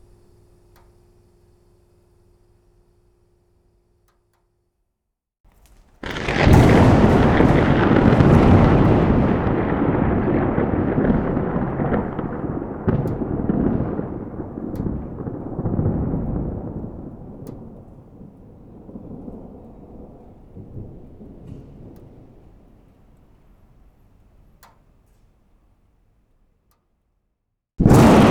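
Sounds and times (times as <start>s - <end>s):
rain: 5.5s - 25.3s, 27.8s - 28.2s
heavy thunder: 6.0s - 22.8s, 27.8s - 28.2s.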